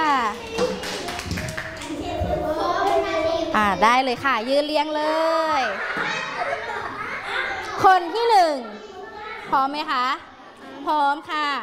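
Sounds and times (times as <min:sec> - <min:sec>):
children clapping hands: 0:00.2 - 0:03.2
speech: 0:03.6 - 0:06.2, 0:07.8 - 0:08.8, 0:09.5 - 0:11.6
laughter: 0:05.6 - 0:07.8.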